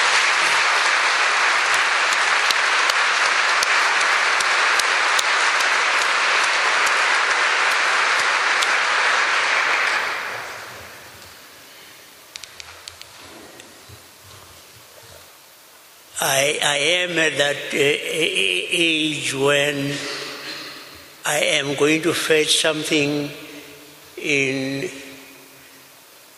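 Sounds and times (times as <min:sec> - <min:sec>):
audience applause: 0:00.0 - 0:12.0
speech: 0:16.6 - 0:20.2, 0:21.3 - 0:23.4, 0:24.2 - 0:25.0.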